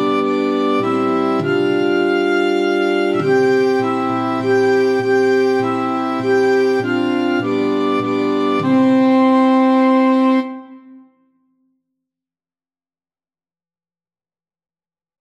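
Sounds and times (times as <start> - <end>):
slow Irish melody: 0.0 - 11.0.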